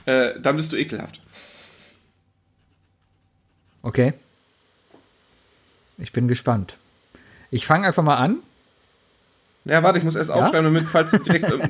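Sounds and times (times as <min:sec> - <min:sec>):
speech: 0:00.0 - 0:01.5, 0:03.8 - 0:04.2, 0:06.0 - 0:06.8, 0:07.5 - 0:08.5, 0:09.6 - 0:11.6
pen writing on a Post-it note: 0:02.6 - 0:03.9
laughter: 0:10.4 - 0:11.6.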